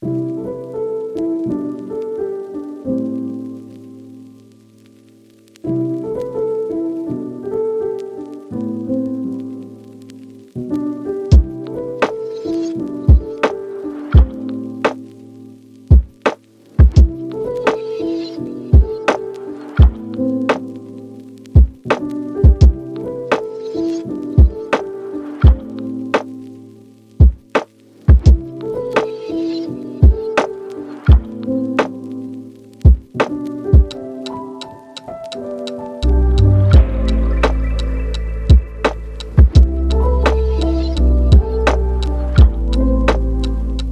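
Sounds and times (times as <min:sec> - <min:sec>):
lofi piano: 0:00.0 - 0:43.9.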